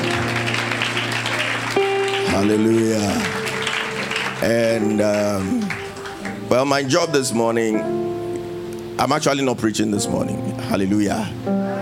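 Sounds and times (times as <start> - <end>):
audience clapping: 0.0 - 7.1
speech: 2.3 - 3.4, 4.4 - 5.8, 6.5 - 8.1, 9.0 - 11.8.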